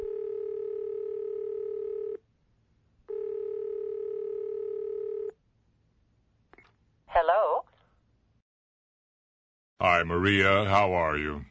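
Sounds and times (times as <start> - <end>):
telephone dialing tone: 0.0 - 2.2, 3.1 - 5.3
speech: 10.0 - 11.4.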